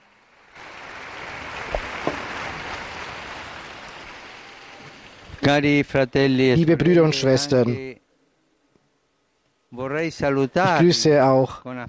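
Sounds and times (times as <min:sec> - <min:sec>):
crowd applause: 0:00.6 - 0:05.8
speech: 0:05.5 - 0:08.0, 0:09.8 - 0:11.8.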